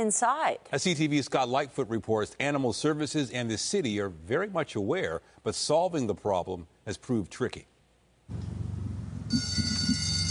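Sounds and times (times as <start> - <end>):
speech: 0.0 - 7.7, 8.3 - 8.6
afternoon recess bell ringing at Our Lady of Peace Elementary School in Brampton: 9.3 - 10.2.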